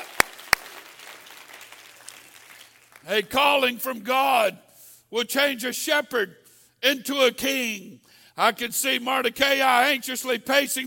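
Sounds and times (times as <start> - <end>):
audience clapping hands: 0.0 - 3.3
speech: 3.0 - 10.8.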